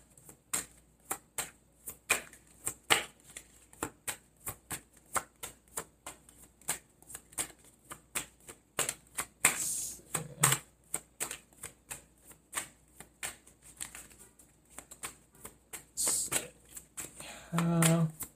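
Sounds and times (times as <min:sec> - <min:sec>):
tarot cards being shuffled and drawn: 0:00.2 - 0:18.3
person talking: 0:16.0 - 0:16.6, 0:17.2 - 0:18.2.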